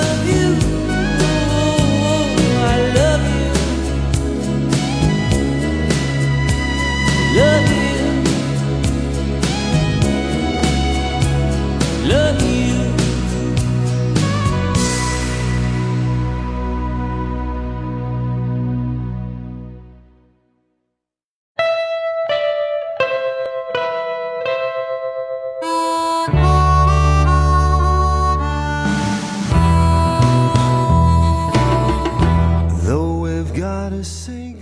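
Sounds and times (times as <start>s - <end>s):
male vocal pop love song recording: 0.0s - 18.2s, 25.8s - 34.6s
gentle ballad with soft plucked notes and warm chords: 0.0s - 19.8s, 21.6s - 34.6s.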